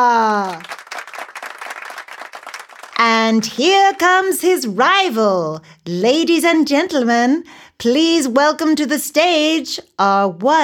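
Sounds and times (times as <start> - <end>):
speech: 0.0 - 0.7, 3.3 - 10.6
audience applause welcoming a contestant to the stage: 0.4 - 3.0.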